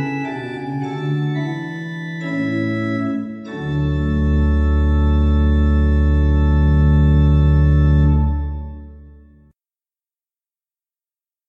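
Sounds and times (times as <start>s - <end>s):
pipe organ: 0.0s - 9.4s.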